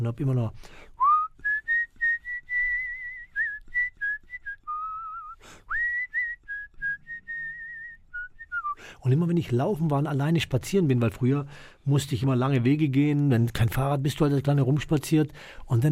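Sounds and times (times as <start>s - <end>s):
speech: 0.0s - 0.9s, 9.0s - 15.9s
person whistling a song melody: 1.0s - 8.8s.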